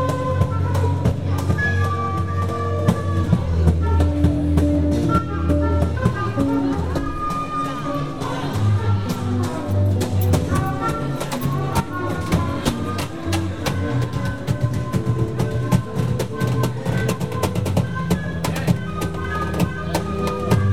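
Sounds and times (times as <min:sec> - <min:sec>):
jazz band playing: 0:00.0 - 0:20.7.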